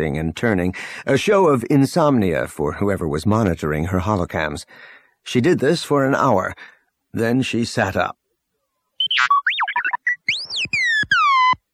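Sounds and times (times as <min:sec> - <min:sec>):
speech: 0:00.0 - 0:08.2, 0:09.2 - 0:09.4
robot beeping: 0:09.0 - 0:11.6.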